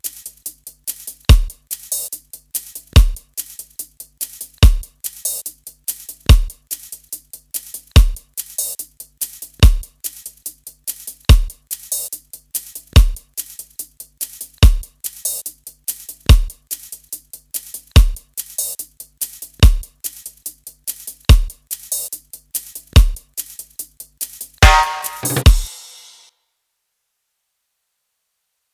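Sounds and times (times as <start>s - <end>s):
drum kit beat at 144 bpm: 0.0s - 26.3s.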